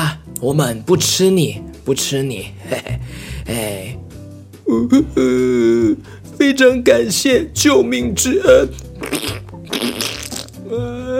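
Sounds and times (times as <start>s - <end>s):
speech: 0.0s - 4.0s, 4.7s - 9.2s
fart: 9.0s - 10.6s.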